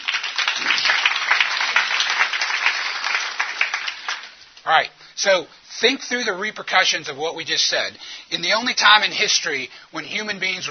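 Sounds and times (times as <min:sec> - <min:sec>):
audience applause: 0:00.0 - 0:04.4
speech: 0:04.7 - 0:10.6.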